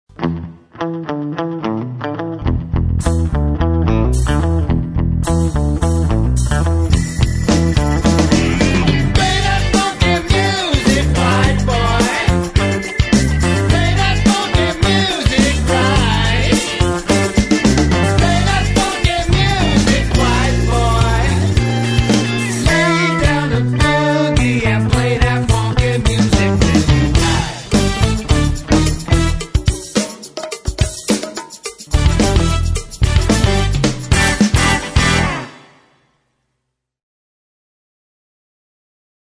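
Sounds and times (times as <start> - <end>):
funky music: 0.1 - 35.8.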